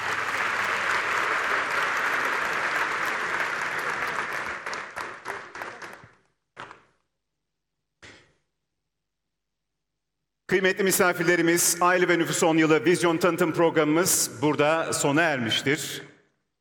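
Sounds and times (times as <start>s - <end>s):
audience applause at an awards ceremony: 0.0s - 6.8s
speech: 10.5s - 16.1s.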